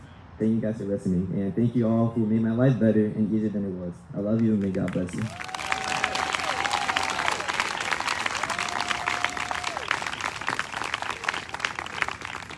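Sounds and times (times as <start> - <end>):
speech: 0.4 - 5.5
audience applause: 4.6 - 12.5
cheers and whistles: 5.2 - 12.5.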